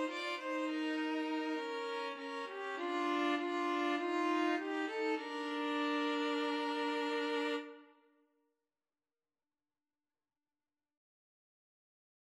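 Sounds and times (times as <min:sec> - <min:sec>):
string trio karaoke: 0:00.0 - 0:07.8.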